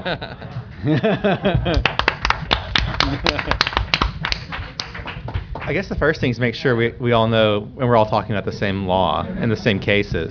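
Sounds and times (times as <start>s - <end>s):
speech: 0.0s - 2.0s, 3.0s - 3.8s, 5.7s - 10.2s
laughter: 0.0s - 3.8s
applause: 1.7s - 6.0s.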